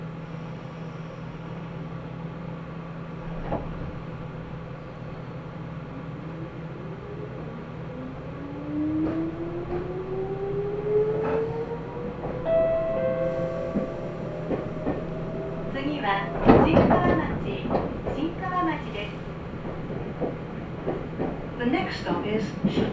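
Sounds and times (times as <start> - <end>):
Nagoya Railroad Mikawa Line train hum: 0.0 - 22.9
clanks and rattles: 11.2 - 21.6
knocks and squeals: 12.2 - 18.4.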